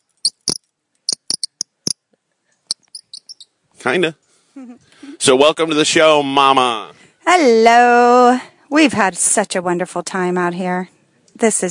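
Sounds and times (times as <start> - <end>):
bird call of short high-pitched chirps and clicks: 0.0 - 2.0, 2.6 - 3.6
speech: 3.8 - 11.7.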